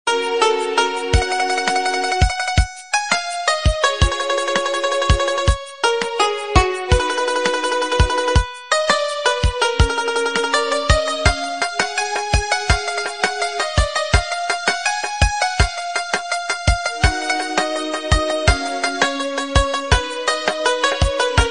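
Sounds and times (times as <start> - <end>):
instrumental ringtone: 0.2 - 21.4.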